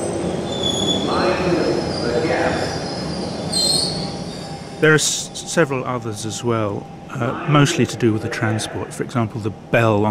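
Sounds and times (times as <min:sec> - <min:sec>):
Underground train wheels squealing and whining: 0:00.0 - 0:05.0
London Underground train rumbling: 0:00.0 - 0:10.0
speech: 0:04.8 - 0:10.0.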